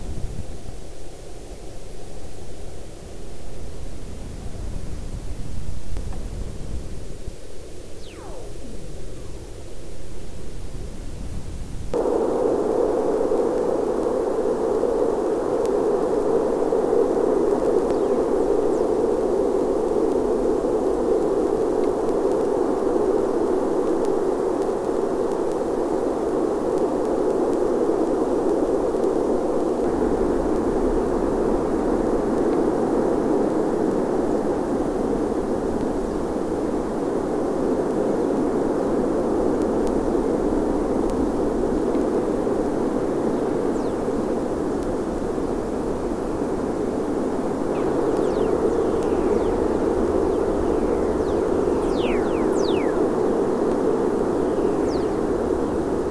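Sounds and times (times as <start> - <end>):
EMFISIS waveform receiver audio: 0.0 - 56.0.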